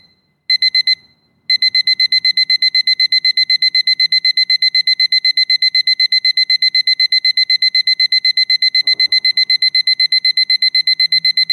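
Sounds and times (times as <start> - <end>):
alarm sound: 0.7 - 11.5.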